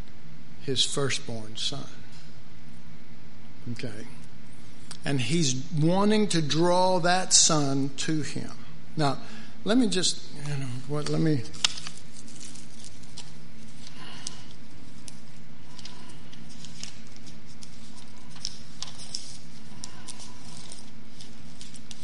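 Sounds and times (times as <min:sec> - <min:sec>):
speech: 0:00.7 - 0:02.0, 0:03.6 - 0:04.2, 0:05.0 - 0:11.7
Bible pages being turned: 0:11.0 - 0:22.0.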